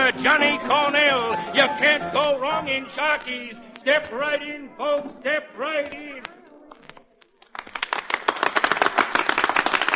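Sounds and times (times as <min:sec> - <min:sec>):
speech: 0:00.1 - 0:06.4
crowd applause: 0:07.4 - 0:09.9.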